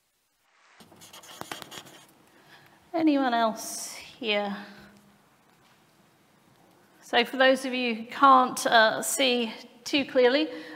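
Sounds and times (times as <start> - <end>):
marker-like strokes writing on a board: 0.8 - 2.2
speech: 3.0 - 4.8, 7.1 - 10.7.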